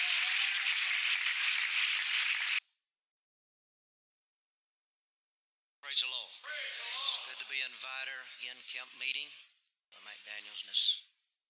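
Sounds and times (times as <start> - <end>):
audience hand clapping: 0.0 - 2.6
speech: 6.0 - 11.1.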